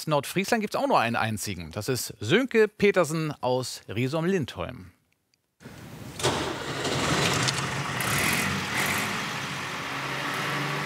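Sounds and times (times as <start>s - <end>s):
speech: 0.0s - 5.0s
vintage Schlüter tractor engine running: 6.1s - 10.0s.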